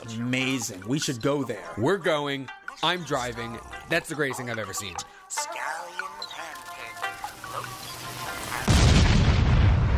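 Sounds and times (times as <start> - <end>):
speech: 0.1 - 5.2
TV exploding: 8.0 - 9.9.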